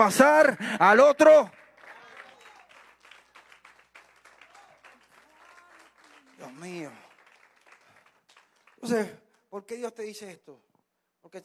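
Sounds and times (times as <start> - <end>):
speech: 0.0 - 1.6, 6.4 - 7.0, 8.8 - 11.4
audience applause: 1.6 - 9.1.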